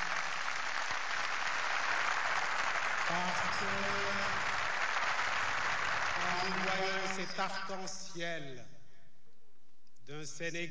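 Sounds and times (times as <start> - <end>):
audience applause: 0.0 - 7.7
speech: 3.5 - 4.5, 6.4 - 8.8, 10.1 - 10.6.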